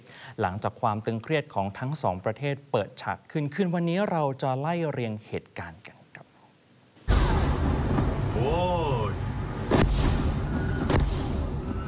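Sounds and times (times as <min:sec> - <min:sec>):
speech: 0:00.4 - 0:06.0
explosions at Shahid Rajaee port in Bandar Abbas, Iran: 0:07.0 - 0:11.8.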